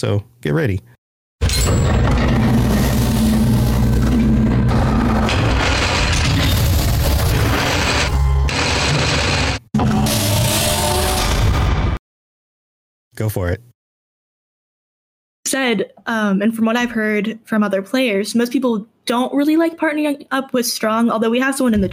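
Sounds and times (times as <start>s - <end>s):
speech: 0.0s - 1.0s, 1.6s - 2.1s, 13.2s - 13.7s, 15.5s - 21.9s
vault door sound effect grinding and rattling: 1.4s - 11.6s.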